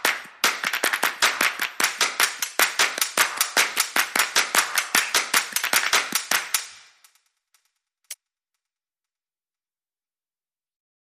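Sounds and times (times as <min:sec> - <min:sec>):
hands clapping in time: 0:00.0 - 0:07.0.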